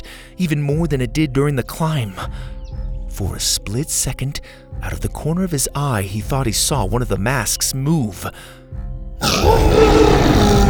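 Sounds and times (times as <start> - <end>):
speech: 0.4 - 2.6, 3.2 - 10.6
creature roaring: 9.2 - 10.6.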